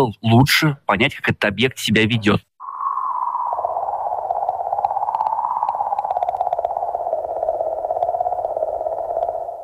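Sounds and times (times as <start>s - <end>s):
speech: 0.0s - 2.5s
sonified comet emission rapid low rattling chirr: 2.6s - 9.6s
sonified comet emission wavering tone: 2.6s - 9.6s.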